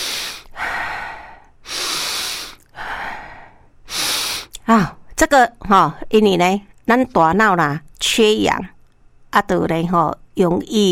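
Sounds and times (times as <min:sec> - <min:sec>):
slow deep breathing: 0:00.0 - 0:04.6
speech: 0:04.7 - 0:10.9.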